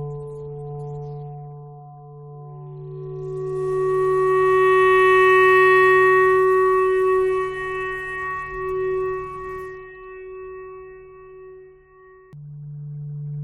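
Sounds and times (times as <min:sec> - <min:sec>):
clarinet thread noise: 0:03.1 - 0:12.3.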